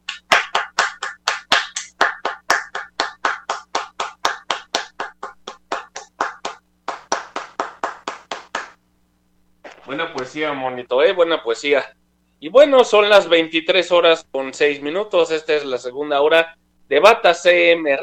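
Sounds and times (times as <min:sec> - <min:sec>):
steady evenly spaced hand claps: 0:00.0 - 0:08.8
speech: 0:09.9 - 0:18.0.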